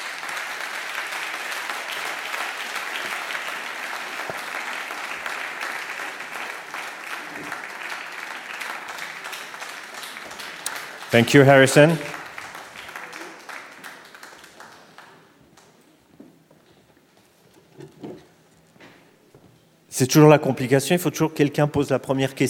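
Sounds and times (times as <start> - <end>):
audience applause welcoming three musicians on stage: 0.0 - 15.8
speech: 11.1 - 12.2, 20.0 - 22.4.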